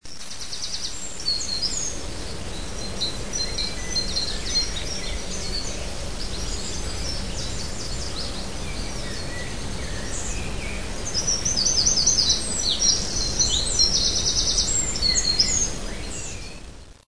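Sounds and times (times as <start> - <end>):
forest ambience: 0.0 - 17.0.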